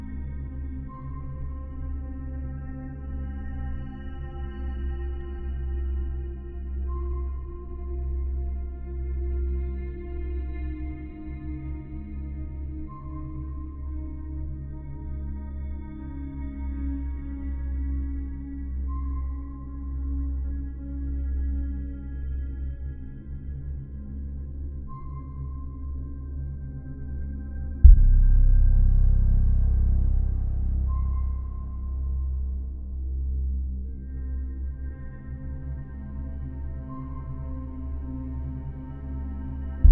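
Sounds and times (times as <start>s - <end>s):
sci-fi ambient music: 0.0s - 39.8s.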